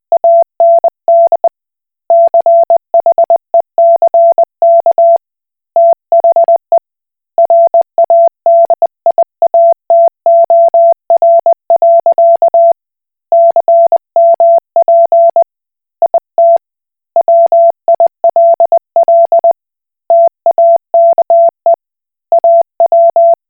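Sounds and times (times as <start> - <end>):
Koch Morse code beeps: 0.2 - 1.5, 2.1 - 5.2, 7.4 - 12.8, 13.4 - 15.4, 16.0 - 16.6, 17.2 - 23.4.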